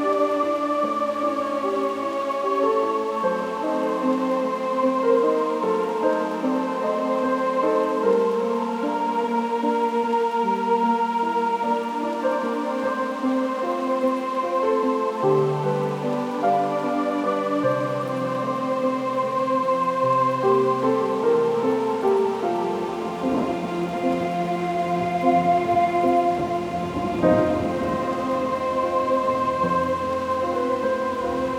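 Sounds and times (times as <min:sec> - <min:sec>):
classical sleep music: 0:00.0 - 0:31.5
thunder: 0:24.9 - 0:29.8.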